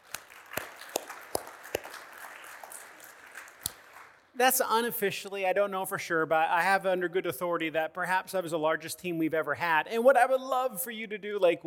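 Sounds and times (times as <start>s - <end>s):
hand claps: 0.0s - 4.3s
scattered crowd noise: 0.0s - 4.5s
speech: 4.4s - 11.6s.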